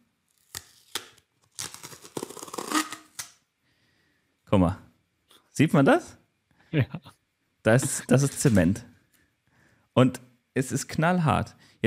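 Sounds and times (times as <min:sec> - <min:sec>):
tape being peeled off to open a sealed hole: 0:00.3 - 0:03.4
speech: 0:04.5 - 0:04.8, 0:05.6 - 0:08.9, 0:10.0 - 0:11.8.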